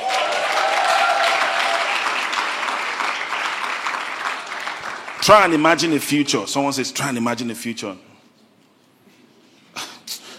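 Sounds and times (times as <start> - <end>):
audience clapping: 0.0 - 6.1
speech: 5.3 - 8.1.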